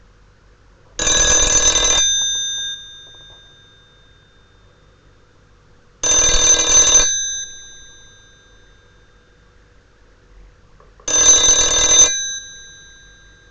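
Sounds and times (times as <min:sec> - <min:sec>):
ringing: 0:01.0 - 0:05.1, 0:06.0 - 0:09.4, 0:11.1 - 0:13.4.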